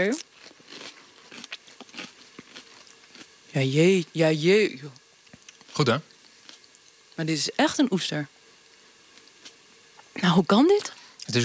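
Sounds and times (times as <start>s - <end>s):
speech: 0.0s - 0.3s, 3.6s - 5.0s, 5.8s - 6.1s, 7.2s - 8.4s, 10.2s - 11.4s
crunchy greenhouse-grown plant food being bitten and chewed: 0.0s - 3.5s, 5.2s - 6.9s.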